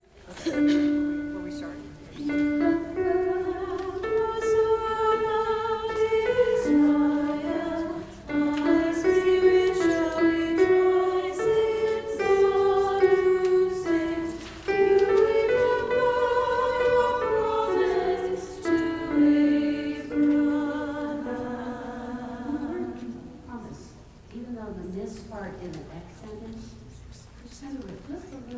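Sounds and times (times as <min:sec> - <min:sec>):
alto singing a Magnificat: 0:00.5 - 0:24.0.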